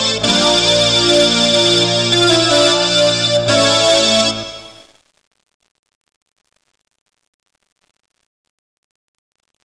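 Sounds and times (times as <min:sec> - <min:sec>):
instrumental music: 0:00.0 - 0:04.9.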